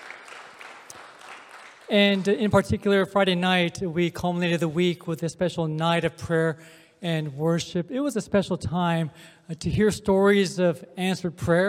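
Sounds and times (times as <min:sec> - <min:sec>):
audience applause: 0:00.0 - 0:02.4
speech: 0:01.9 - 0:11.6.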